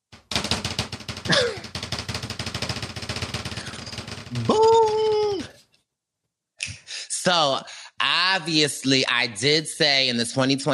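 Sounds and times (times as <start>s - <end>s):
drum roll: 0.0s - 5.6s
speech: 4.3s - 4.7s, 7.2s - 10.7s.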